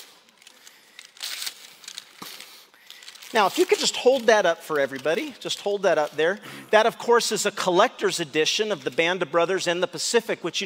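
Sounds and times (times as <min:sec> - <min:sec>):
wrapping paper torn off a gift: 0:00.0 - 0:06.4
speech: 0:03.3 - 0:10.6.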